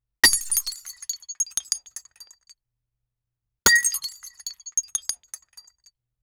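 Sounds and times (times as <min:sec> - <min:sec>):
glass breaking: 0:00.2 - 0:02.3, 0:03.7 - 0:05.6.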